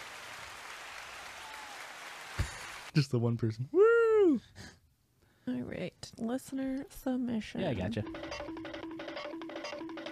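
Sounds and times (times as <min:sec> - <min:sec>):
muffled applause sound effect: 0:00.0 - 0:03.0
speech: 0:03.0 - 0:04.8, 0:05.5 - 0:08.5.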